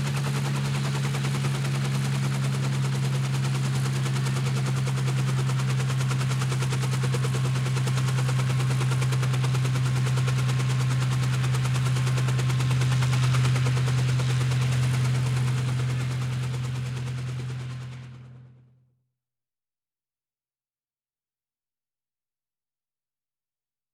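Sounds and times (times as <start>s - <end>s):
air ambulance helicopter rotor: 0.0s - 18.7s.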